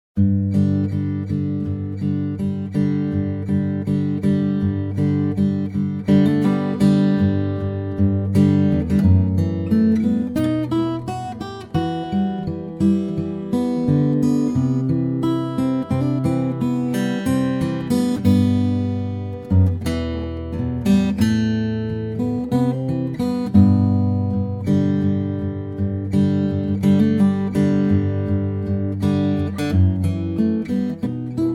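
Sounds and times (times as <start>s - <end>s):
guitar: 0.1s - 31.5s.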